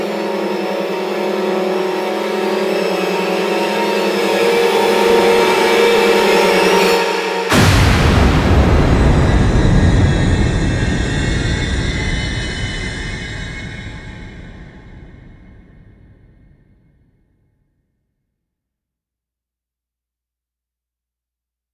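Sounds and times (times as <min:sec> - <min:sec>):
heavy tension ambient music: 0:00.0 - 0:16.5.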